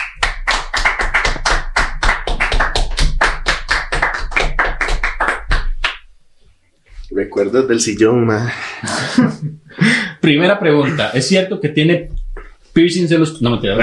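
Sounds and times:
applause: 0.0 - 6.0
speech: 7.4 - 12.2, 12.8 - 13.8
laughter: 8.5 - 11.2, 13.7 - 13.8.

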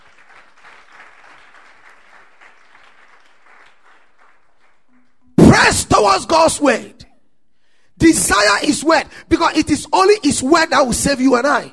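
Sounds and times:
audience clapping: 0.0 - 5.2
speech: 5.6 - 7.0, 8.0 - 11.7.

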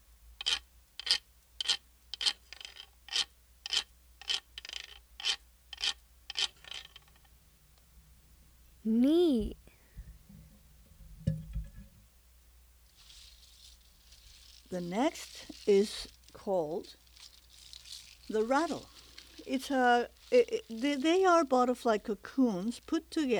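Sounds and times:
deer dance wooden rasp being scraped: 0.4 - 7.3, 12.9 - 21.3
speech: 14.8 - 17.0, 18.3 - 23.3.

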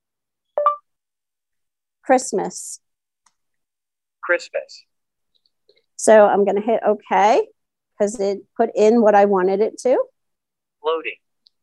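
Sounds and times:
device beep in text box: 0.6 - 0.8
speech: 2.1 - 2.8, 4.3 - 4.9, 6.0 - 10.1, 10.8 - 11.2.

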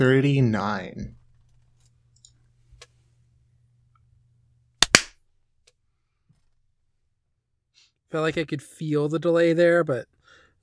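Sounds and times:
speech: 0.0 - 1.2, 8.1 - 10.2
hand clap for recording sync: 4.8 - 5.1.

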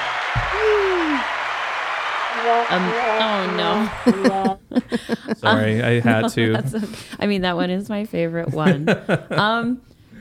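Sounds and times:
canned applause sound effect: 0.0 - 4.6
laughter: 2.4 - 6.9, 8.5 - 9.7
speech: 2.4 - 10.1.

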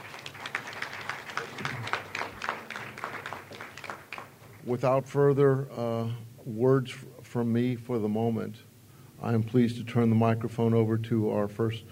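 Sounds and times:
audience applause: 0.0 - 4.6
speech: 4.7 - 11.9.

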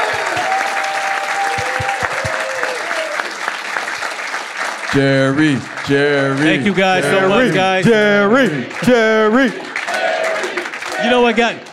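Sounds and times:
faint vocal whoops: 0.0 - 3.2
audience applause: 0.0 - 11.7
speech: 4.9 - 9.7, 11.0 - 11.7.

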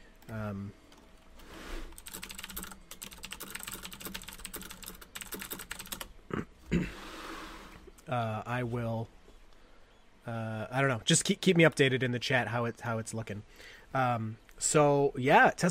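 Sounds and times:
speech: 0.3 - 0.8, 8.1 - 9.2, 10.3 - 15.6
quiet typing on a computer keyboard: 1.9 - 6.1.

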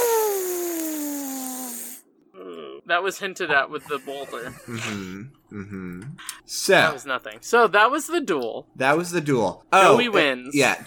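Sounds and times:
air hiss of something deflating: 0.0 - 2.0
speech: 2.9 - 10.8.

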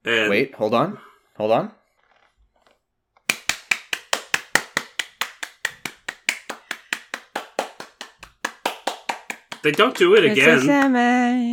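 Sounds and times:
speech: 0.0 - 1.8, 9.6 - 11.5
hand clapping: 3.3 - 11.0.

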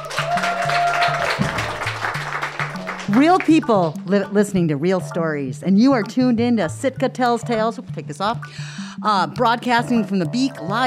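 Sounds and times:
audience clapping: 0.0 - 4.1
speech: 3.1 - 10.8.

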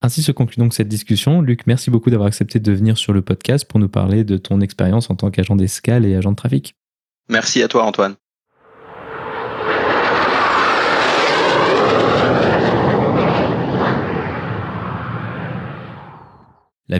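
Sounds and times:
speech: 0.0 - 8.2
airplanes landing and taking off: 8.6 - 16.7.

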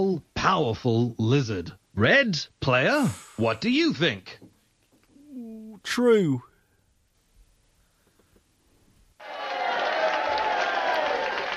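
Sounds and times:
speech: 0.0 - 4.4, 5.8 - 6.5
crowd booing: 9.2 - 11.5.

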